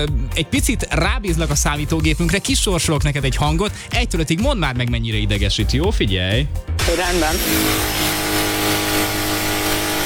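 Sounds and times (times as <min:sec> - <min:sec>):
speech: 0:00.0 - 0:08.5
power drill running: 0:06.8 - 0:10.0.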